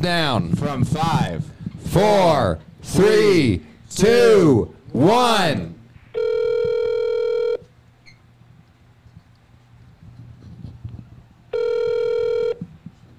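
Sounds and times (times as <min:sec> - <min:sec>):
speech: 0:00.0 - 0:05.8
low rumbling hum: 0:00.0 - 0:13.1
phone line electronic ring tones: 0:06.1 - 0:07.7, 0:11.5 - 0:12.6.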